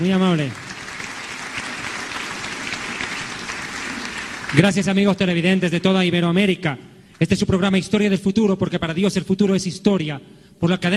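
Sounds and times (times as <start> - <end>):
speech: 0.0 - 0.6, 4.5 - 10.9
church audience applauding a speaker's welcome: 0.0 - 5.3.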